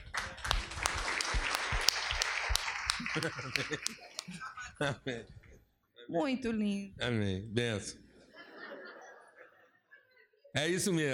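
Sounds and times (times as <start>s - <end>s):
audience applause: 0.0s - 4.6s
laughter: 2.0s - 5.6s, 8.2s - 10.6s
speech: 3.2s - 5.4s, 6.1s - 8.0s, 10.6s - 11.1s.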